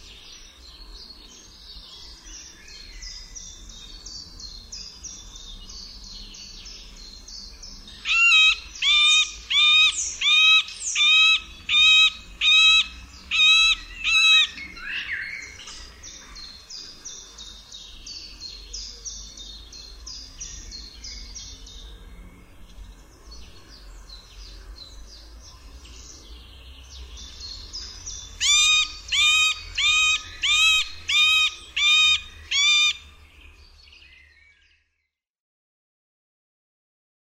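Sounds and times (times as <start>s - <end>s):
middle spotted woodpecker: 8.0s - 14.6s, 28.4s - 33.0s.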